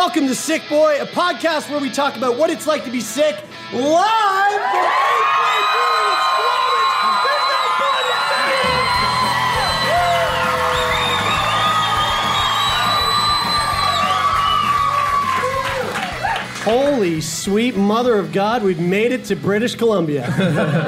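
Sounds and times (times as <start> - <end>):
speech: 0.0 - 6.3, 16.6 - 20.8
live audience at a show in British Columbia cheering, whooping and yelling: 4.0 - 16.9
laughter: 20.2 - 20.8.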